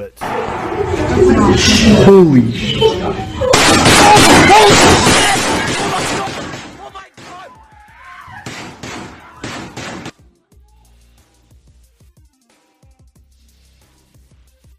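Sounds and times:
gunshots in audio of the Uvalde shooting played in court: 0.2 - 7.5, 8.4 - 10.2
speech: 1.2 - 5.4.

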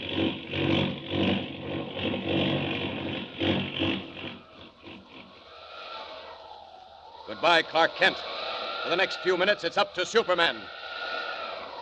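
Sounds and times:
plane engine roaring in a tailspin dive: 0.0 - 11.8
speech: 7.4 - 10.8.

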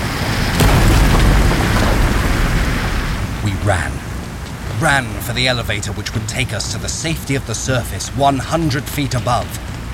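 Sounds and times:
sea water roaring through mine tunnels: 0.0 - 9.9
sharp booming crack: 0.4 - 3.5
speech: 3.7 - 4.1, 4.8 - 9.7.

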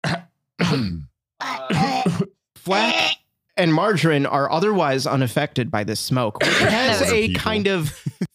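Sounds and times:
coughing: 0.0 - 3.2, 6.4 - 7.6
speech: 0.7 - 8.3
laughter: 6.4 - 8.3.

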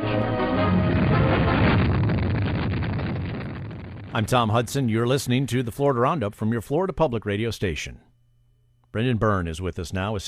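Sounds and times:
Thor-Able Delta rocket launch roar: 0.0 - 5.0
speech: 4.2 - 8.1, 8.9 - 10.2.

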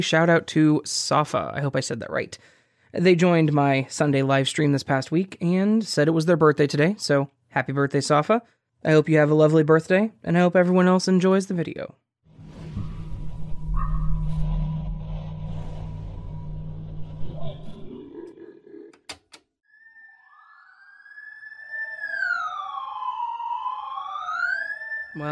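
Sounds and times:
speech: 0.0 - 12.0, 25.2 - 25.3
low rumbling hum: 12.3 - 18.9
sharp clicks: 19.0 - 19.5
alarm clock wailing electronic tone: 20.2 - 25.3.

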